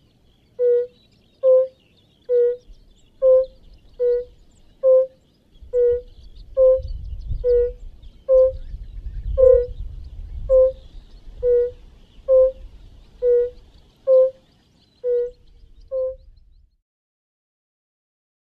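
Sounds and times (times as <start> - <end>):
European fire-bellied toad call: 0.6 - 8.6, 9.4 - 9.8, 10.5 - 10.8, 11.4 - 12.6, 13.2 - 14.4, 15.0 - 16.2.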